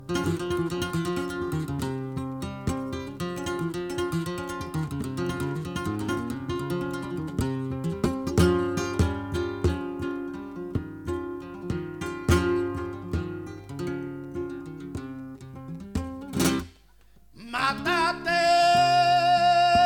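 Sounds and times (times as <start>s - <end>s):
siguiriya flamenco: 0.0s - 19.8s.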